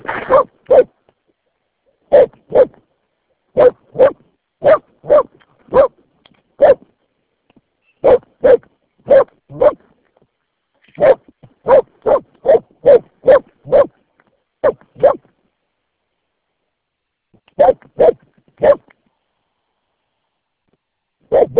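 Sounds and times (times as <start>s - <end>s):
dog barking: 0.2s - 1.0s, 2.1s - 2.8s, 3.5s - 6.0s, 6.6s - 6.8s, 8.0s - 9.8s, 11.0s - 14.0s, 14.6s - 15.3s, 17.6s - 18.9s, 21.3s - 21.5s.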